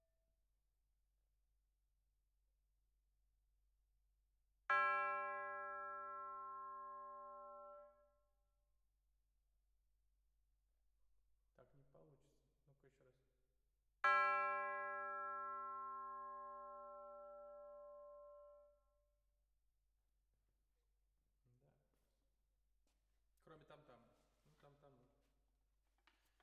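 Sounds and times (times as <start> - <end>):
percussion: 4.7 - 8.1, 14.0 - 18.8.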